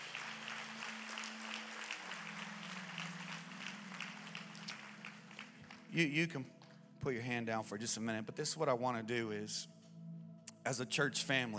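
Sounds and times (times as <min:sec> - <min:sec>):
large indoor audience applauding in church auditorium: 0:00.0 - 0:06.3
speech: 0:06.0 - 0:09.8, 0:10.6 - 0:11.5.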